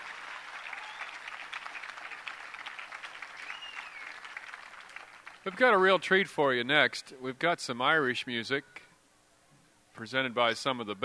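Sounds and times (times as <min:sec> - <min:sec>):
audience applause: 0:00.0 - 0:05.9
whistles: 0:00.6 - 0:01.4, 0:03.3 - 0:04.4
speech: 0:05.4 - 0:08.8, 0:10.0 - 0:11.0.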